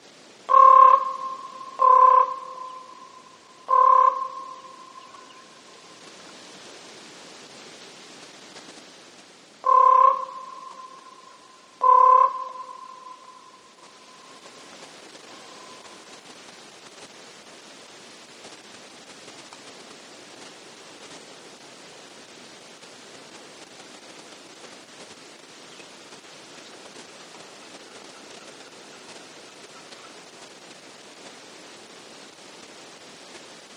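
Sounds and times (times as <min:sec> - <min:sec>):
common raven croak calls: 0:00.5 - 0:05.9, 0:09.6 - 0:16.2
common raven popping call: 0:00.5 - 0:06.2, 0:09.6 - 0:16.4, 0:27.4 - 0:30.7.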